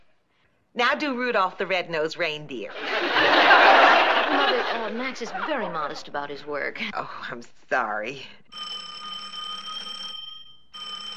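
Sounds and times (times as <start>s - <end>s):
speech: 0.8s - 8.6s
laughter: 2.7s - 6.2s
shoe phone ringing: 8.5s - 11.1s.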